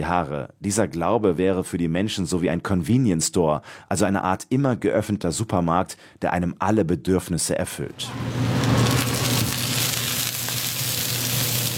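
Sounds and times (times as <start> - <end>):
speech: 0.0 - 9.2
food sizzling and spattering in hot oil: 8.2 - 11.7.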